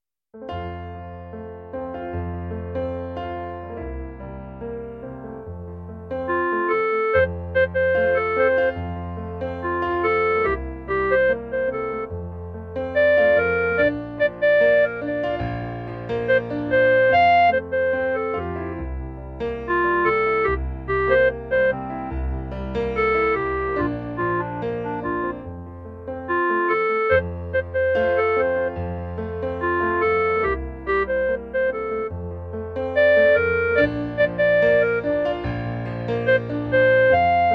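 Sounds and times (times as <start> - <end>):
clarinet: 6.0 - 37.5.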